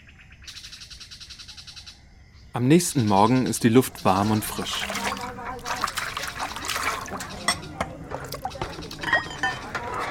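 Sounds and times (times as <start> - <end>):
speech: 2.6 - 5.0
running water splashing: 3.8 - 10.1
dishes clinking: 4.4 - 10.1.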